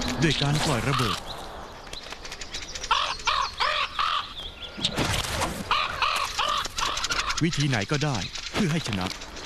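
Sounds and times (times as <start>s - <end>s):
speech: 0.2s - 1.3s, 7.4s - 9.4s
crow cawing: 0.6s - 1.4s, 2.9s - 4.4s, 5.6s - 7.4s.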